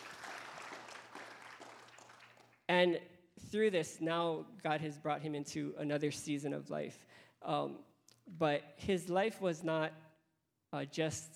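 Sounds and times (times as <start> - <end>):
audience clapping: 0.0 - 2.7
speech: 2.7 - 10.0, 10.7 - 11.3.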